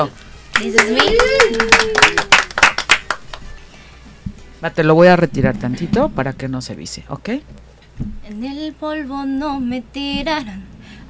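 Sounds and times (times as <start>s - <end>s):
speech: 0.0s - 2.3s, 4.6s - 11.0s
audience clapping: 0.5s - 3.6s.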